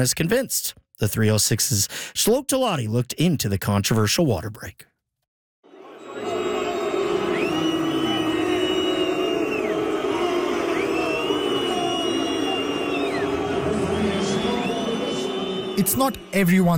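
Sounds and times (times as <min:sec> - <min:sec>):
speech: 0:00.0 - 0:04.9, 0:15.8 - 0:16.7
World Cup stadium crowd booing: 0:05.6 - 0:16.7.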